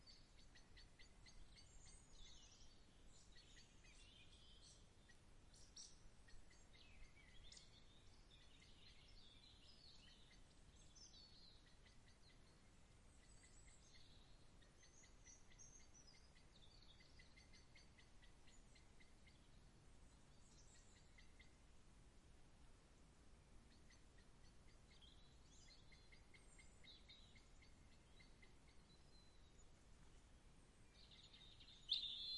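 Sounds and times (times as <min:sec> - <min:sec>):
birds: 0:00.0 - 0:32.3.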